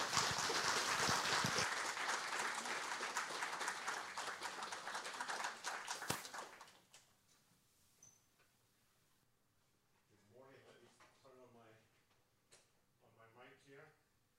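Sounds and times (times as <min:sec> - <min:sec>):
church congregation applause welcoming a guest speaker: 0:00.0 - 0:06.9.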